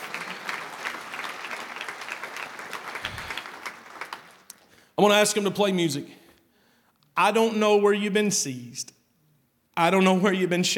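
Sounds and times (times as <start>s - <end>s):
audience clapping and cheering: 0.0s - 4.7s
speech: 5.0s - 6.2s, 7.2s - 9.0s, 9.8s - 10.7s.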